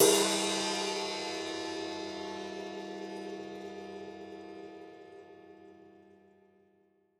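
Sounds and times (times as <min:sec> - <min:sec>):
drum kit cymbal: 0:00.0 - 0:04.6.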